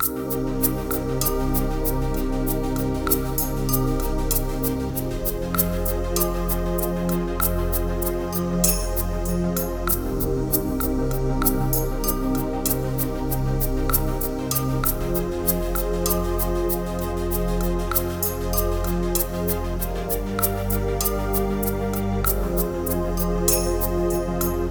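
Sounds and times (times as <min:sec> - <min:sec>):
quirky fantasy dreamscape music: 0:00.0 - 0:24.7.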